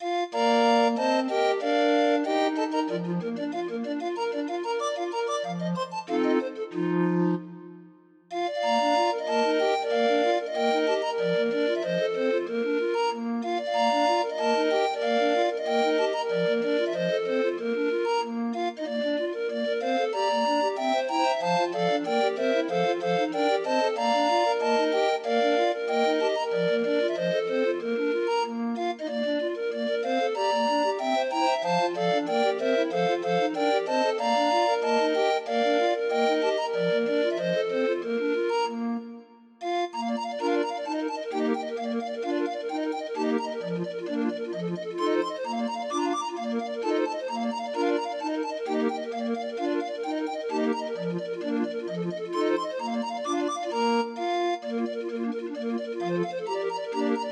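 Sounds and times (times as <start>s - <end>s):
grind organ playing a Scottish tune: 0.3s - 7.7s, 8.3s - 57.3s.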